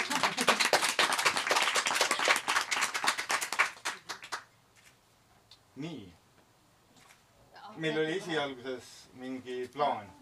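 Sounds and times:
crowd applauding: 0:00.0 - 0:04.4
speech: 0:05.8 - 0:06.2, 0:07.8 - 0:10.2.

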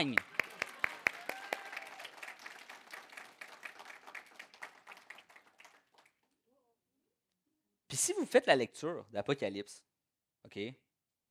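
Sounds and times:
speech: 0:00.0 - 0:00.3, 0:07.9 - 0:10.8
audience applauding: 0:00.0 - 0:06.3.

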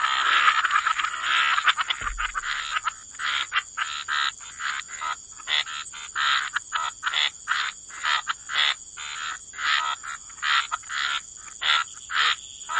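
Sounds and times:
frog chorus: 0:00.0 - 0:12.7
steady background hiss: 0:00.0 - 0:12.7
low thump: 0:02.0 - 0:02.8.

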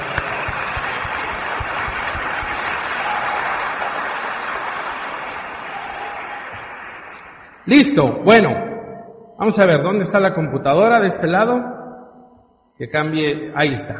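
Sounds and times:
audience applause: 0:00.0 - 0:07.7
speech: 0:07.7 - 0:08.6, 0:09.4 - 0:11.8, 0:12.8 - 0:13.9.

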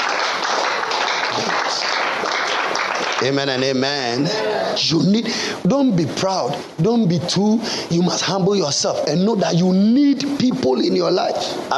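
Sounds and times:
audience clapping hands: 0:00.0 - 0:04.0
speech: 0:03.2 - 0:11.7.

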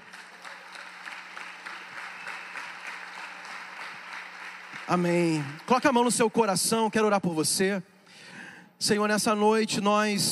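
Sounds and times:
loud audience applause: 0:00.0 - 0:06.2
speech: 0:04.9 - 0:07.9, 0:08.8 - 0:10.3.

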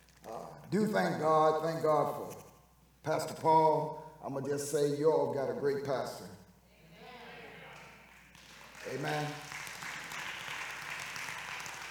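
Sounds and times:
speech: 0:00.7 - 0:02.4, 0:03.0 - 0:06.4, 0:08.9 - 0:09.4
audience hand clapping applause: 0:07.7 - 0:11.8.

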